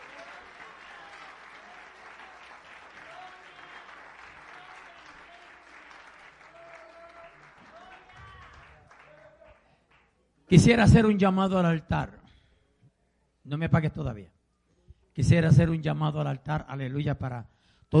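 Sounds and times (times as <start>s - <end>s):
audience applauding: 0.0s - 10.1s
speech: 10.5s - 12.2s, 13.5s - 14.4s, 15.2s - 17.9s.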